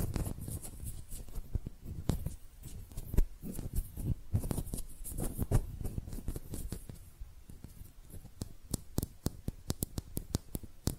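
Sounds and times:
hand clicks and rubbing taps: 0:00.1 - 0:10.9.

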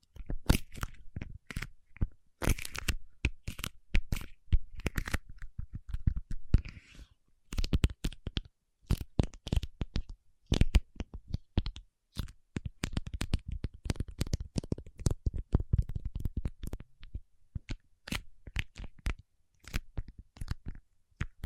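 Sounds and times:
paraffin wax tapped, scratched and peeled: 0:00.0 - 0:06.7, 0:07.5 - 0:21.4
soft crinkling scrape: 0:06.6 - 0:07.2.

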